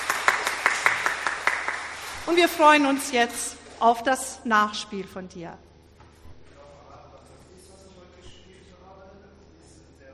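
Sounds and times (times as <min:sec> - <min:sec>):
applause: 0:00.0 - 0:03.2
speech: 0:02.3 - 0:05.7.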